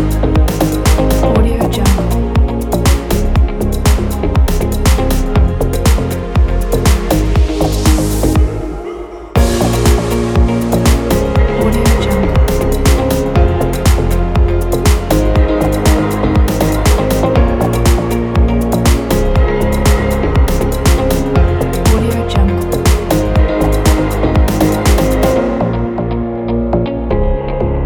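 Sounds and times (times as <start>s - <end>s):
upbeat fashion disco background music: 0.0s - 27.8s.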